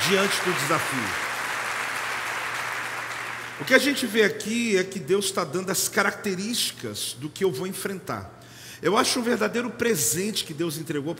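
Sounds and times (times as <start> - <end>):
audience applause: 0.0 - 3.8
speech: 0.1 - 1.3, 3.6 - 11.1.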